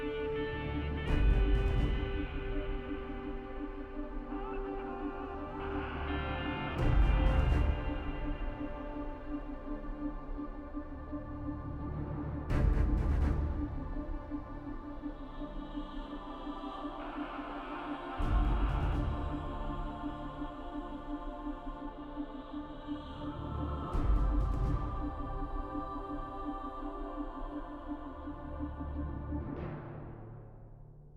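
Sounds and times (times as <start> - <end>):
music: 0.0 - 31.1.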